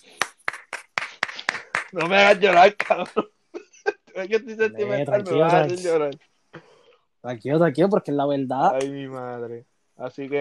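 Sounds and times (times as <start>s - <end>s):
single pair of hands clapping: 0.0s - 3.3s, 8.7s - 9.1s
speech: 1.9s - 3.4s, 4.2s - 10.4s
laughter: 2.0s - 5.9s.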